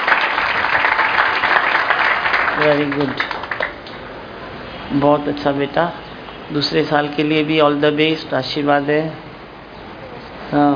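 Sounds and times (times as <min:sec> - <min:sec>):
crowd applauding to honour an elderly guest at a gathering: 0:00.0 - 0:04.0
speech: 0:02.6 - 0:03.4, 0:04.9 - 0:09.2, 0:10.5 - 0:10.7.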